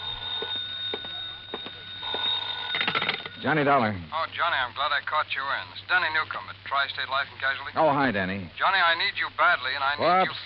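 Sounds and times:
old-fashioned telephone bell ringing: 0.0 - 3.8
speech: 3.4 - 10.4.

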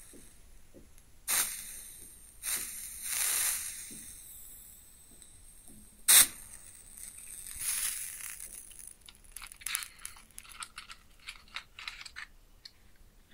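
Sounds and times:
match striking and flaring: 1.3 - 4.5, 6.1 - 11.1
burning match sizzling and crackling: 1.3 - 11.2.

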